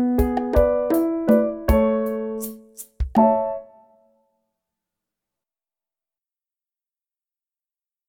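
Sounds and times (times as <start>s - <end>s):
calypso accompaniment: 0.0s - 3.7s.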